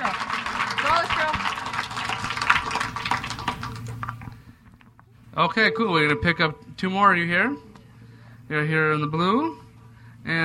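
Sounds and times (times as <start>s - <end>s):
crowd clapping: 0.0s - 4.4s
speech: 5.4s - 7.7s, 8.5s - 9.6s, 10.2s - 10.4s.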